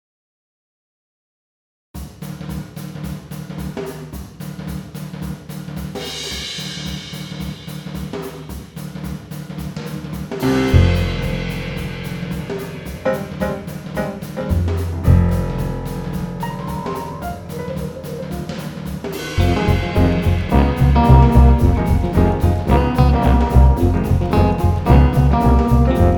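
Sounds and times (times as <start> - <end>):
upbeat jazz: 10.3 - 26.1.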